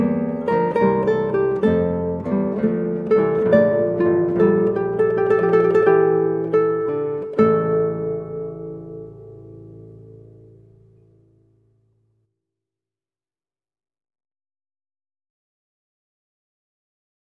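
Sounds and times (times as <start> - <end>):
guitar piece: 0.0 - 12.1.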